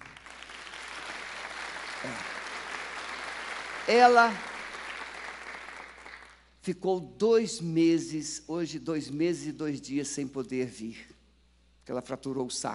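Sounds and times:
audience applause: 0.0s - 6.4s
speech: 2.0s - 2.3s, 3.9s - 4.5s, 6.6s - 11.1s, 11.9s - 12.7s.

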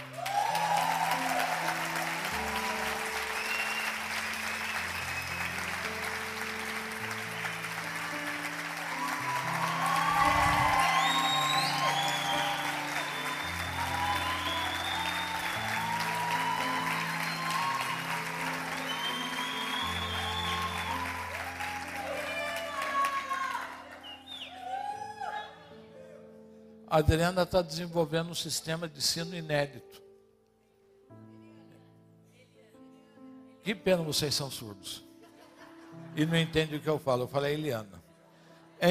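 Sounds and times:
audience applause: 0.0s - 25.4s
speech: 27.0s - 30.0s, 33.7s - 35.1s, 36.2s - 38.0s.

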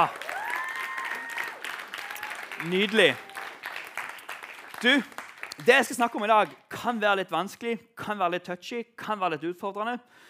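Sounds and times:
speech: 0.0s - 0.2s, 2.6s - 3.3s, 4.8s - 10.2s
audience applause: 0.0s - 6.6s.

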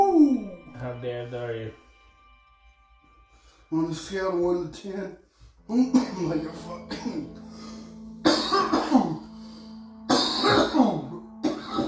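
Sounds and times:
speech: 0.9s - 1.9s, 3.7s - 7.6s
person coughing: 5.9s - 6.3s, 6.9s - 7.4s, 8.2s - 9.3s, 10.1s - 11.8s.

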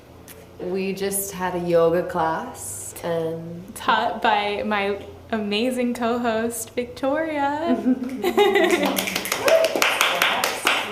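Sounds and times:
speech: 0.6s - 9.8s
laughter: 7.7s - 9.6s
audience clapping at a live gathering of friends: 8.5s - 10.9s.

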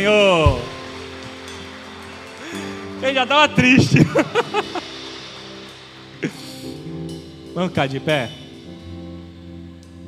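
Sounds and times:
crowd applauding: 0.0s - 7.5s
low sustained musical tone: 0.0s - 10.0s
laughter: 2.4s - 5.1s
speech: 3.0s - 4.9s, 6.2s - 6.4s, 7.6s - 8.4s.

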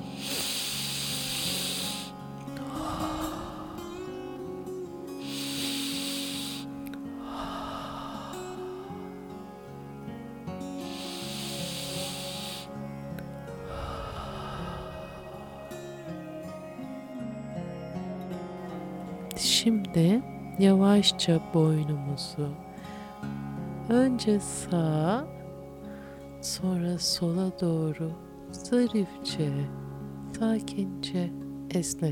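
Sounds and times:
slow exhalations through the mouth with soft hoh sound during breathing exercise: 0.0s - 9.8s, 10.8s - 16.8s
quiet tonal background: 0.0s - 32.1s
speech: 19.6s - 22.6s, 23.9s - 25.4s, 26.4s - 29.8s, 30.4s - 32.1s.

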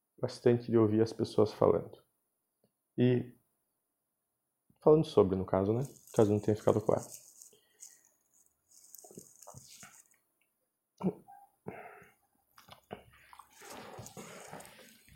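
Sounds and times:
speech: 0.2s - 2.0s, 3.0s - 3.4s, 4.8s - 7.3s
hot water poured into mate gourd: 5.8s - 10.2s, 13.2s - 15.1s.

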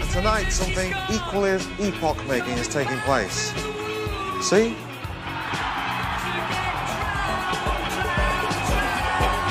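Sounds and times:
speech: 0.1s - 3.8s, 4.4s - 4.9s
crowd applauding a DJ: 4.9s - 9.4s.

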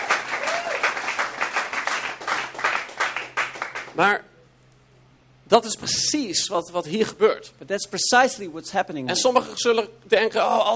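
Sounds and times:
audience applauding: 0.0s - 4.0s
speech: 4.0s - 4.3s, 5.5s - 10.7s.

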